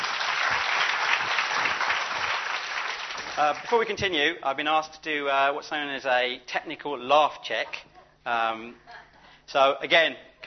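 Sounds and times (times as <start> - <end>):
audience applause: 0.0 - 3.8
speech: 3.4 - 8.8, 9.5 - 10.4.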